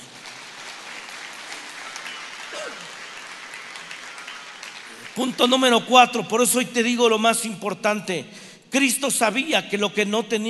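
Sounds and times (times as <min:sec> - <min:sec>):
audience applause: 0:00.0 - 0:05.9
speech: 0:05.1 - 0:10.4.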